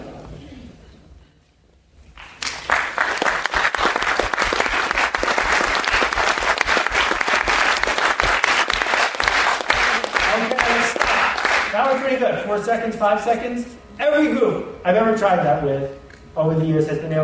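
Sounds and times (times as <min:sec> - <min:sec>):
audience clapping in unison rhythm: 0:02.1 - 0:12.4
speech: 0:12.5 - 0:17.2.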